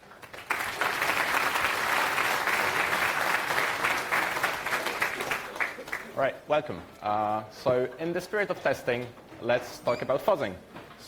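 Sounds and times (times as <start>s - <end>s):
audience applause: 0.0s - 6.2s
speech: 6.2s - 11.0s.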